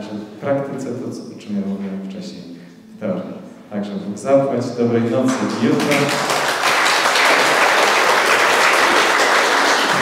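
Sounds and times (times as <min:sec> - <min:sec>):
speech: 0:00.0 - 0:06.4
audience applause: 0:05.3 - 0:09.9.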